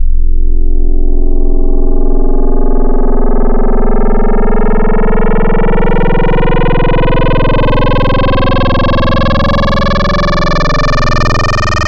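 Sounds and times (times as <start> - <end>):
FM wavetable synth tone: 0.0 - 11.8.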